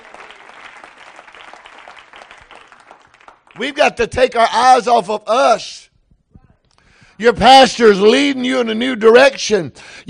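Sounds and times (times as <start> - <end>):
audience clapping: 0.0 - 4.1
speech: 3.6 - 5.8, 7.2 - 10.0.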